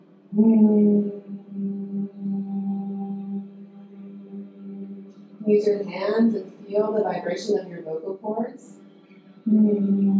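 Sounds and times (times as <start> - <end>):
speech: 0.3 - 1.8, 5.5 - 8.9, 9.5 - 10.1
person humming a closed-mouth mmm: 0.3 - 7.0, 9.5 - 10.1.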